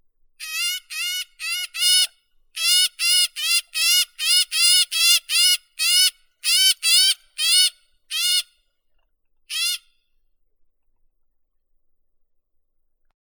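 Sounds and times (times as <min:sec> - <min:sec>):
great grey shrike Lanius excubitor calling: 0:00.4 - 0:08.4, 0:09.5 - 0:09.8.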